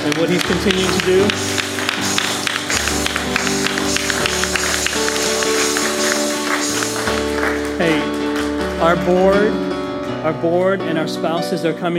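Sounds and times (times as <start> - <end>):
sustained held music notes: 0.0 - 9.4
audience clapping hands: 0.0 - 10.7
speech: 0.1 - 1.6, 8.9 - 11.9.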